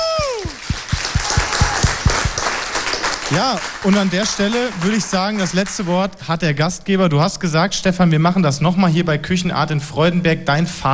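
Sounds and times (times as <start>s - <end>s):
whooping cheer sliding downward: 0.0s - 2.3s
rhythmic audience clapping: 0.0s - 6.2s
speech: 3.3s - 10.9s.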